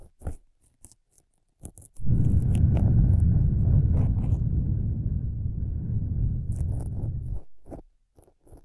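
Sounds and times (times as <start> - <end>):
breath blowing fu fu into ears: 2.0 - 7.7.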